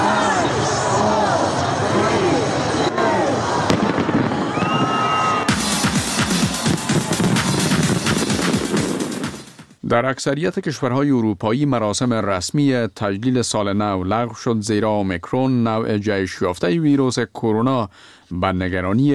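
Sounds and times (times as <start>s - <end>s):
crowd murmur: 0.0s - 5.0s
people cheering: 0.0s - 8.6s
New Year fireworks bursting and crackling: 3.6s - 9.8s
speech: 9.9s - 19.1s.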